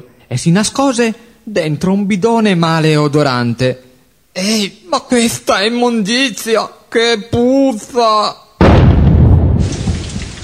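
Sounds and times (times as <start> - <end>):
speech: 0.0 - 3.8, 4.4 - 8.4
loud thunder rumbling in a rainstorm: 8.6 - 10.4
rain hissing in a rainstorm: 9.4 - 10.4.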